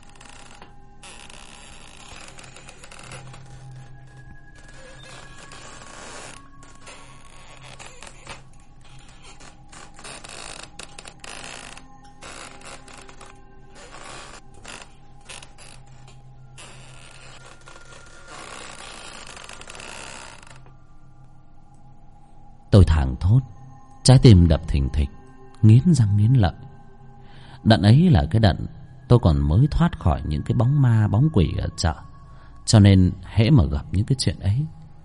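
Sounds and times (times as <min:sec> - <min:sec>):
wooden rocking chair creaking back and forth: 0:00.0 - 0:21.0
speech: 0:22.8 - 0:26.7, 0:27.6 - 0:32.0, 0:32.7 - 0:34.8.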